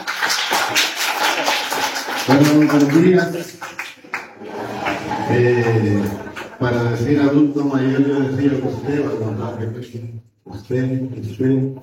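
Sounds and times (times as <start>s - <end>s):
audience applause: 0.0s - 6.6s
speech: 2.3s - 3.7s, 5.3s - 11.8s
laughter: 4.0s - 9.8s.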